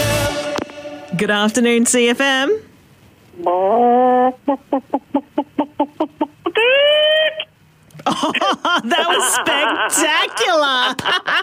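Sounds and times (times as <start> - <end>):
speech: 1.2 - 2.7, 3.4 - 6.8, 8.1 - 11.4
person imitating a chicken: 3.3 - 7.5
laughter: 8.0 - 11.4.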